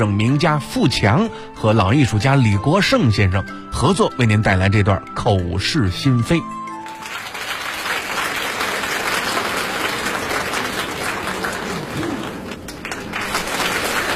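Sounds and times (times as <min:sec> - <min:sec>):
speech: 0:00.0 - 0:06.6
audience applause at a live crosstalk comedy show in a theatre: 0:06.8 - 0:14.1.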